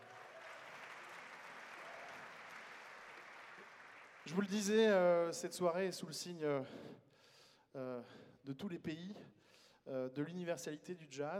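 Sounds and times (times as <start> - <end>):
audience applause: 0.0 - 4.6
speech: 4.2 - 7.1, 7.7 - 11.3.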